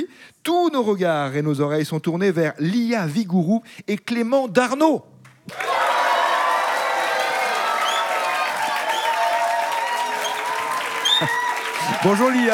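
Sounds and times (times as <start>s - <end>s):
speech: 0.0s - 5.8s, 12.0s - 12.5s
audience applause: 5.5s - 12.5s
faint cheers and voices: 5.5s - 12.5s.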